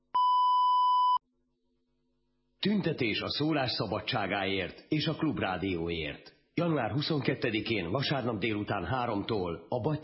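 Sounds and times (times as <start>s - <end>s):
answering machine beep: 0.2s - 1.2s
speech: 2.6s - 10.0s.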